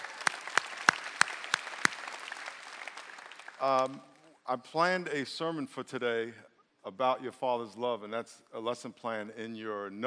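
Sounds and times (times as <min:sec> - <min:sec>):
church congregation clapping to welcome graduates: 0:00.0 - 0:04.3
speech: 0:03.6 - 0:10.0.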